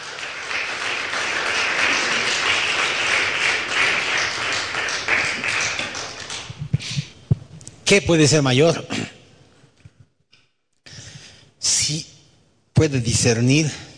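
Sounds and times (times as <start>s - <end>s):
audience applause: 0.0s - 6.6s
speech: 7.9s - 9.0s, 12.8s - 13.9s.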